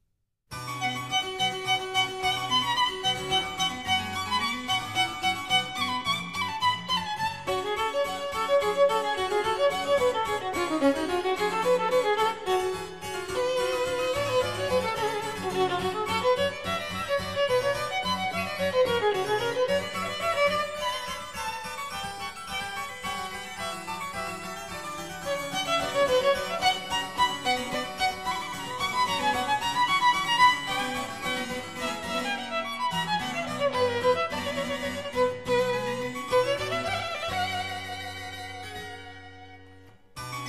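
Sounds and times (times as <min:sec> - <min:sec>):
violin: 0:00.5 - 0:40.4
harpsichord: 0:00.7 - 0:39.0.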